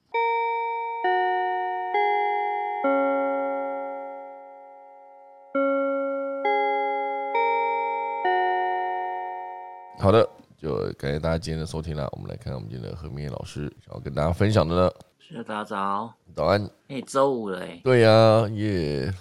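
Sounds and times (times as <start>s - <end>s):
melodic bell chime: 0.0s - 10.2s
speech: 10.1s - 19.1s.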